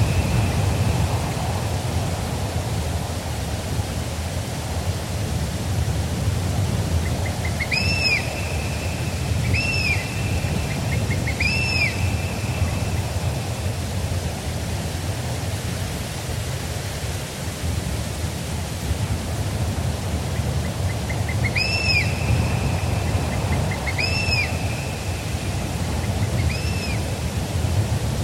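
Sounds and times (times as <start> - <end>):
cool breeze rushing through forest trees: 0.0 - 28.2
whistled bird-of-prey calls: 7.0 - 13.0, 20.9 - 27.1.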